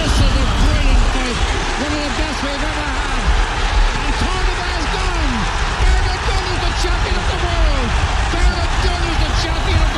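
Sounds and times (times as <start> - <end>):
crowd roaring at boxing world title win: 0.0 - 9.9.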